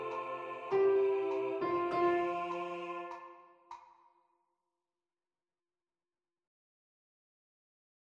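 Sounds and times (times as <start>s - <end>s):
piano: 0.0s - 3.4s
soprano singing: 0.0s - 3.4s.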